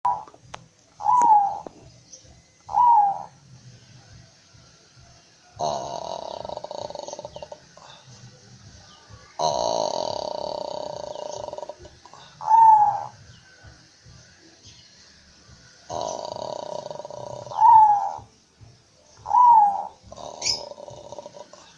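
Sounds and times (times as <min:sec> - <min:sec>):
zebra dove purring trill and coos: 0:00.1 - 0:00.4, 0:01.0 - 0:01.9, 0:02.6 - 0:03.4, 0:05.6 - 0:08.3, 0:09.4 - 0:13.4, 0:15.8 - 0:18.3, 0:19.2 - 0:21.7.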